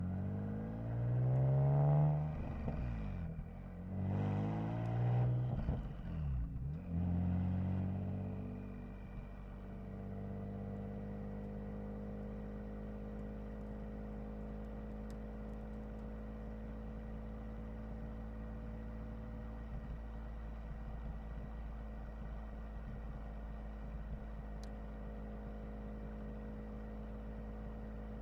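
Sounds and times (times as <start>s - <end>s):
2012 Nissan 370Z engine starting and driving at steady RPMs: 0.0s - 28.2s.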